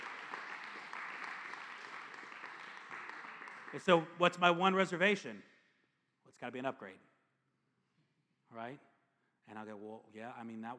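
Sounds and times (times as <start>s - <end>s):
audience applause: 0.0s - 4.0s
speech: 3.7s - 5.5s, 6.4s - 7.1s, 8.5s - 8.9s, 9.5s - 10.7s.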